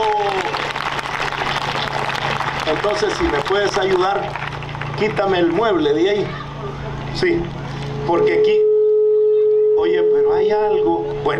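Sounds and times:
audience applause: 0:00.0 - 0:05.8
speech: 0:02.7 - 0:06.4, 0:07.1 - 0:08.6, 0:09.9 - 0:11.3.

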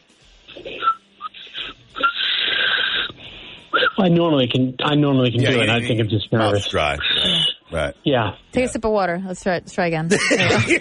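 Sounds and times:
inhaled backwards whistling: 0:00.5 - 0:04.0, 0:07.0 - 0:07.7
speech: 0:04.0 - 0:10.7
laughter: 0:10.1 - 0:10.7.

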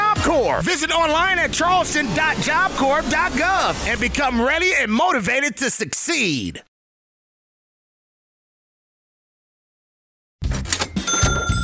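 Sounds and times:
speech: 0:00.3 - 0:06.7
cash register cha-ching sound effect: 0:10.4 - 0:11.6.

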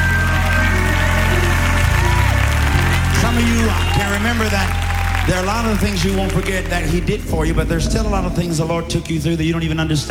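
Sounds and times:
audience clapping hands: 0:00.0 - 0:08.5
speech: 0:03.7 - 0:10.0.

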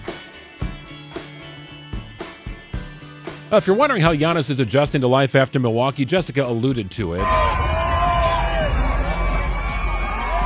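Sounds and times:
speech: 0:03.5 - 0:07.6
crowd cheering at WNBA game arena in Las Vegas: 0:07.2 - 0:10.4.

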